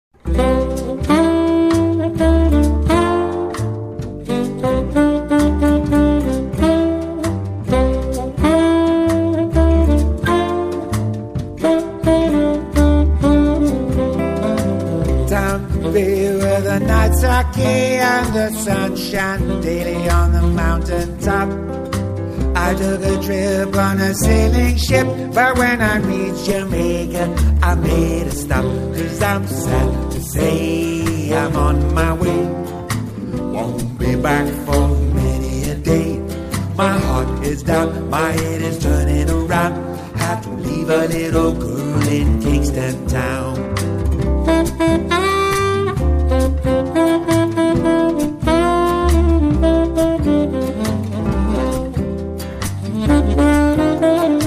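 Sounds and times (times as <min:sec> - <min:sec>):
musical trio: 0:00.2 - 0:54.4.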